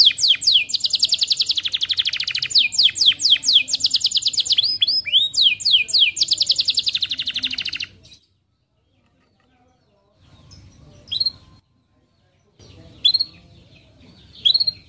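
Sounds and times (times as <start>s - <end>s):
Atlantic canary delivering rapid high trills and whistles: 0.0s - 8.0s.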